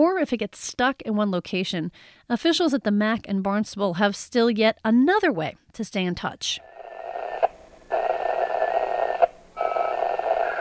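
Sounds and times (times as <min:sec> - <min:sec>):
speech: 0:00.0 - 0:06.7
shortwave ham radio data transmission tones: 0:06.6 - 0:10.5.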